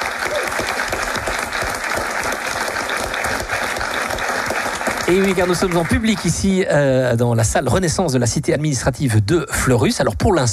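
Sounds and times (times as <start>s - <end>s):
audience applause: 0.0s - 6.6s
speech: 5.1s - 10.5s.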